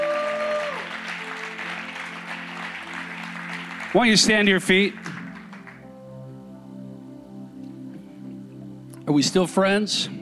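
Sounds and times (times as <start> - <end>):
audience applauding: 0.0 - 6.0
sustained organ chord: 0.0 - 10.2
speech: 3.9 - 5.1, 9.2 - 10.2.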